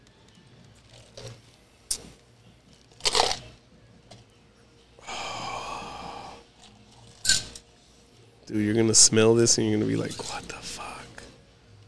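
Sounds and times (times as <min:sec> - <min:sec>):
drink can popping open: 0:03.0 - 0:03.4
speech: 0:08.5 - 0:10.6.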